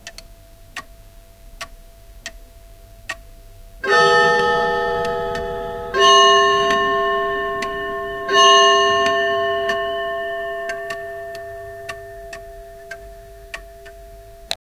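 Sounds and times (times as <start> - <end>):
heavenly clock ticking: 0.0 - 14.6.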